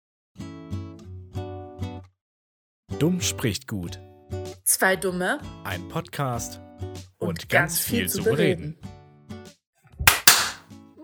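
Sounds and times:
speech: 3.0 - 4.1, 4.7 - 8.9
single hand clap: 10.1 - 10.6.

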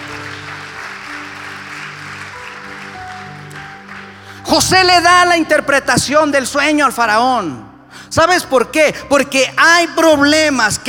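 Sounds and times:
audience applause: 0.0 - 4.4
sustained low musical tones: 0.0 - 10.6
speech: 4.5 - 10.8.

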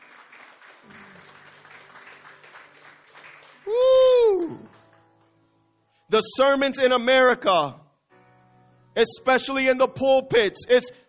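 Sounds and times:
audience applause: 0.0 - 5.0
speech: 3.6 - 3.9, 6.1 - 7.8, 9.0 - 11.0.

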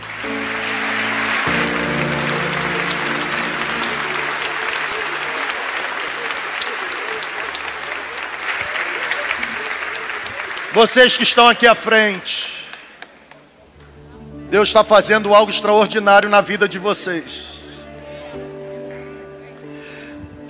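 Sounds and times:
sustained organ-like tones: 0.0 - 6.0
audience applauding: 0.0 - 13.7
speech: 10.8 - 12.5, 14.5 - 17.5.

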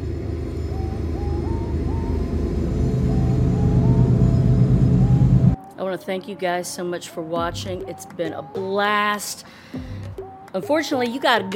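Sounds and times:
train passing: 0.0 - 5.6
speech: 6.0 - 11.5.

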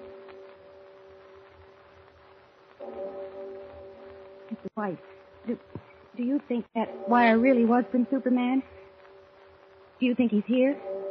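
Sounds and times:
deep bell tolling the hour: 2.8 - 5.1, 6.8 - 8.9
speech: 4.5 - 8.8, 10.0 - 11.0.

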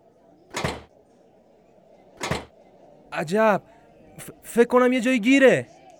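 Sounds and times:
door pushed open by a locksmith banging into a chair: 0.5 - 0.9, 2.2 - 2.5
speech: 3.2 - 5.8.

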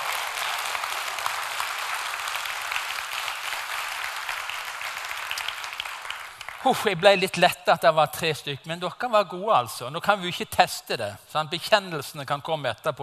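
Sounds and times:
audience applause: 0.0 - 7.0
speech: 6.6 - 13.0.

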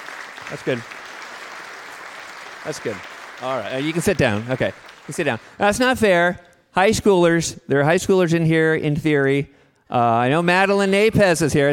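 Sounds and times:
audience applause: 0.0 - 6.0
speech: 0.5 - 1.0, 2.6 - 11.7.

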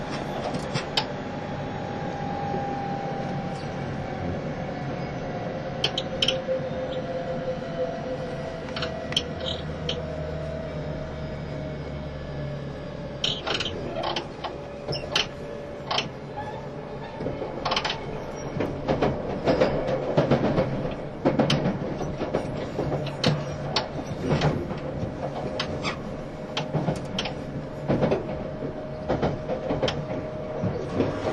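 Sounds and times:
rail clicks and knocks: 0.0 - 1.2, 5.6 - 10.5, 13.1 - 31.3
JR East E351 series Super Azusa train rumble: 0.0 - 31.3.

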